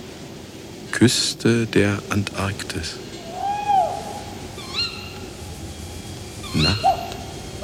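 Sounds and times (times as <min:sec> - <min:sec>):
soft hiss: 0:00.0 - 0:07.6
speech: 0:00.9 - 0:03.1, 0:06.5 - 0:07.0
owl hooting at night: 0:03.2 - 0:07.6.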